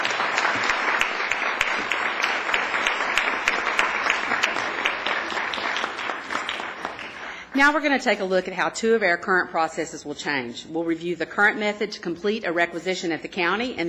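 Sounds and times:
crowd clapping: 0.0s - 7.6s
speech: 7.6s - 13.8s.

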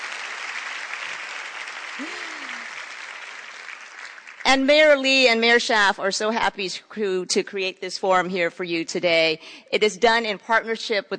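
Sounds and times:
audience applause: 0.0s - 4.5s
speech: 4.5s - 11.1s.

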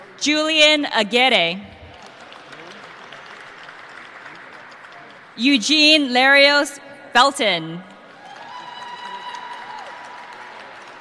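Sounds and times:
speech: 0.2s - 1.7s, 5.4s - 7.9s
audience applause: 1.9s - 5.4s, 7.9s - 10.9s.

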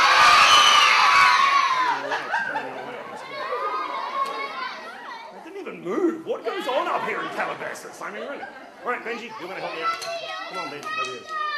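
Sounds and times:
crowd of children in an audience shouting yeah: 0.0s - 2.2s, 2.8s - 5.4s, 9.2s - 11.5s
children chattering: 1.5s - 11.5s
laughter: 1.8s - 4.6s, 6.7s - 9.0s
speech: 7.8s - 11.4s.

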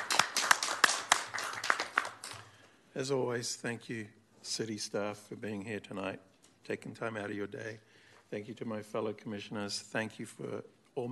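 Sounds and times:
audience applause: 0.0s - 2.4s
speech: 3.0s - 11.1s.

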